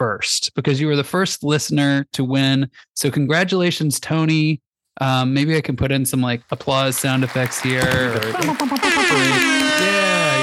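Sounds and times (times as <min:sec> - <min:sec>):
speech: 0:00.0 - 0:10.4
laughter: 0:07.1 - 0:10.4
air horn blast: 0:08.8 - 0:10.4.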